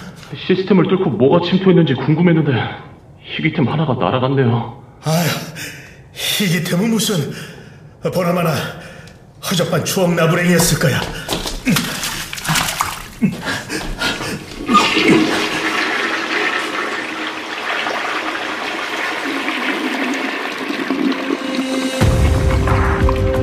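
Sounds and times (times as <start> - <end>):
speech: 0.5 - 5.8, 6.4 - 8.8, 9.4 - 11.8
toilet flushing: 11.4 - 23.3.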